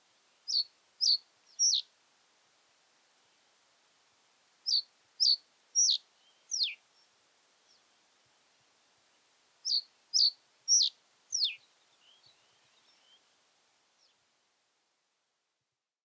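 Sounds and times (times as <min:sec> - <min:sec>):
common reed bunting Emberiza schoeniclus singing: 0:00.5 - 0:01.9, 0:04.7 - 0:06.8, 0:09.6 - 0:13.2.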